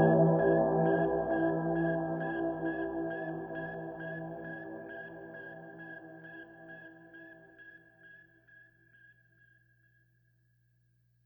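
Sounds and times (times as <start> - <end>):
outro background music: 0.0 - 8.1.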